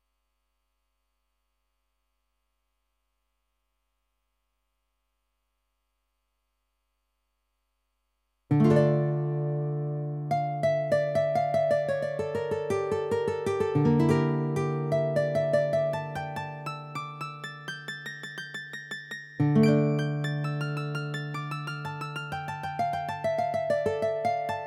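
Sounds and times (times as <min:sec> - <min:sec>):
guitar: 0:08.5 - 0:24.6.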